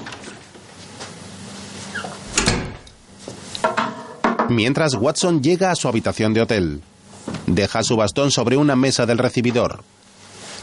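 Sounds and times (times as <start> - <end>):
door being pushed shut: 1.9 - 3.1
speech: 4.5 - 6.9, 7.5 - 10.0.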